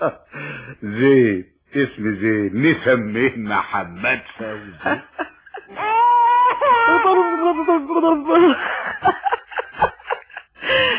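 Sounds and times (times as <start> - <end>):
speech: 0.0 - 5.2, 7.9 - 9.2
laughter: 4.4 - 10.9
baby crying in a radio drama: 5.7 - 8.6.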